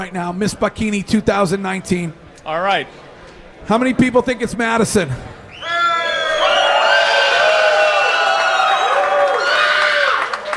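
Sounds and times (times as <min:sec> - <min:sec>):
speech: 0:00.0 - 0:05.4
audience cheering and screaming: 0:05.6 - 0:10.5.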